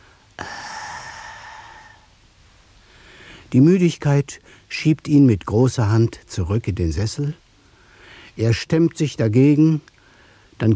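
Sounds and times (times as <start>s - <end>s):
man exhaling steam and groaning after drinking tea: 0.4s - 2.1s
speech: 3.5s - 7.4s, 8.4s - 9.9s, 10.6s - 10.7s.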